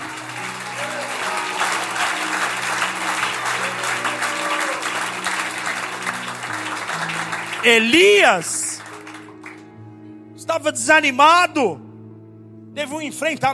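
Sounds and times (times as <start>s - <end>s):
audience applause: 0.0s - 9.6s
sustained low keyboard chords: 0.0s - 13.5s
speech: 7.6s - 8.6s, 10.6s - 11.8s, 12.8s - 13.5s.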